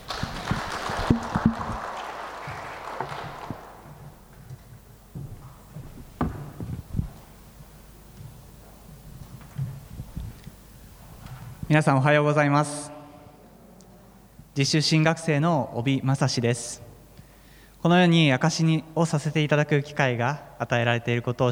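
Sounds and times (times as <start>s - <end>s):
audience applause welcoming speaker: 0.0s - 4.1s
speech: 11.7s - 12.9s, 14.6s - 16.9s, 17.8s - 21.5s.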